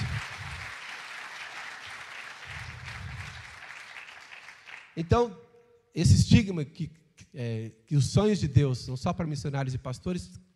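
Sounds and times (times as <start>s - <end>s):
audience applause: 0.0s - 5.1s
speech: 5.0s - 5.4s, 6.0s - 10.4s.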